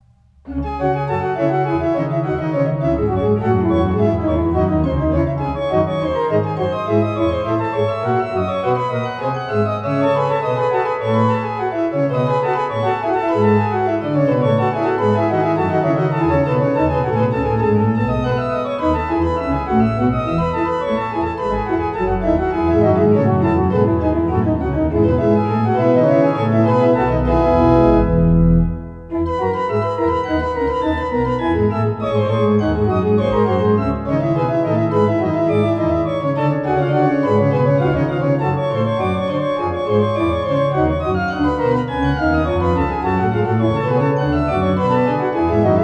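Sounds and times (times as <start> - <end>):
prelude in C minor: 0.0 - 45.8.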